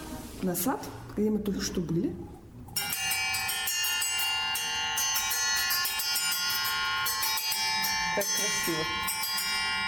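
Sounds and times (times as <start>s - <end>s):
speech: 0.4s - 2.4s, 8.2s - 9.1s
church bells ringing: 2.8s - 9.8s.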